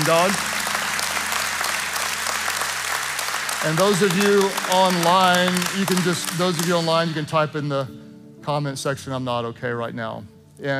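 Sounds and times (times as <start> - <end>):
crowd applause: 0.0 - 7.2
speech: 0.1 - 0.5, 3.6 - 10.7.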